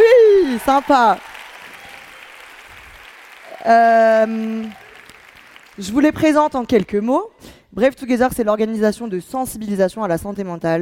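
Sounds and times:
audience applause: 0.0 - 6.4
speech: 0.7 - 1.3, 3.6 - 4.8, 5.8 - 10.7.

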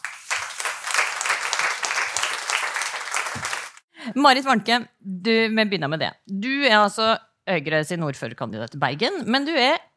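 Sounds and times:
audience applause: 0.0 - 3.8
speech: 4.1 - 9.9.

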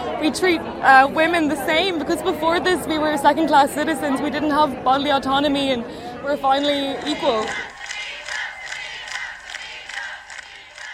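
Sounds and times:
speech: 0.2 - 7.7
large crowd chanting: 6.7 - 10.9.

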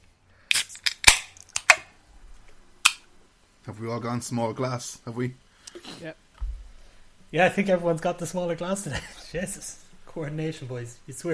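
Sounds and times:
beer cans cracking open with fizzy hiss: 0.5 - 2.0
speech: 3.7 - 5.4, 6.0 - 6.2, 7.3 - 11.3.

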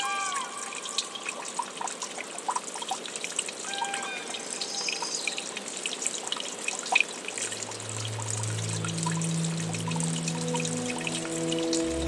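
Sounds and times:
brook trickling and splashing: 0.0 - 12.0
low humming tone: 7.4 - 12.0.

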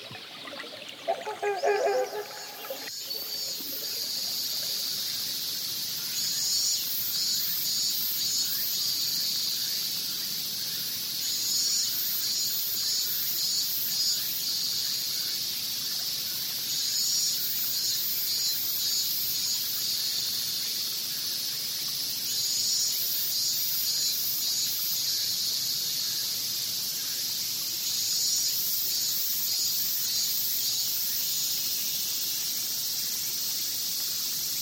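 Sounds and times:
forest insect chorus: 0.0 - 34.5
louder squealing calls: 0.8 - 4.0.

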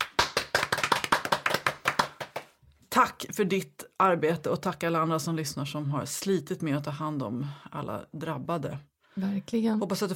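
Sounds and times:
light applause: 0.0 - 2.6
speech: 3.0 - 10.1.

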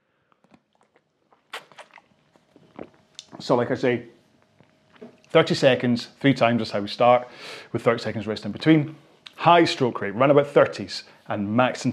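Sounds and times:
person drinking with gulping swallows: 0.4 - 3.4
speech: 3.4 - 4.2, 5.3 - 11.9.

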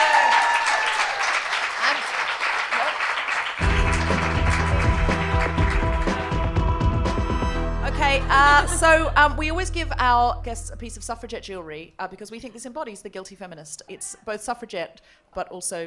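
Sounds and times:
crowd clapping and cheering: 0.0 - 7.5
upbeat music with heavy bass line: 3.6 - 11.6
speech: 8.4 - 15.8.

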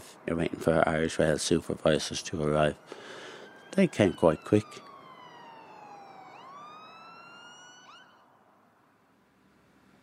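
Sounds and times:
traffic rumble: 0.0 - 10.0
speech: 0.2 - 3.1, 3.7 - 4.9
emergency vehicle siren: 1.8 - 8.8.

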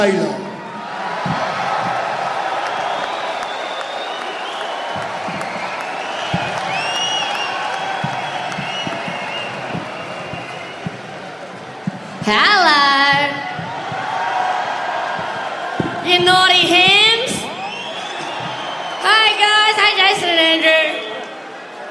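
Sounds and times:
speech: 0.0 - 0.4, 12.3 - 12.6
cheers and whoops: 0.5 - 11.5, 12.6 - 21.6
crowd applause: 0.6 - 21.8
high whistles: 2.5 - 11.9, 16.8 - 19.7.

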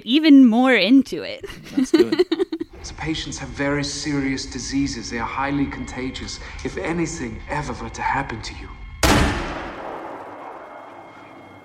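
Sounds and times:
speech: 0.0 - 8.8
laughter: 1.4 - 2.8
gunshot in a film trailer for Chained for Life: 9.0 - 11.4.

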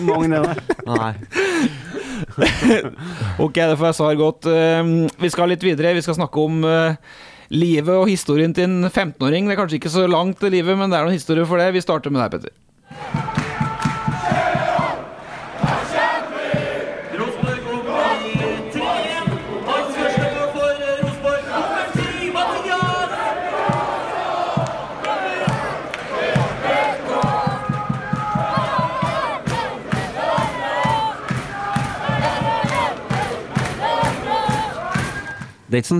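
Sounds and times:
laughter: 0.0 - 3.0
speech: 0.0 - 13.3, 35.7 - 35.9
football crowd chanting sha-la-la: 12.9 - 35.4.

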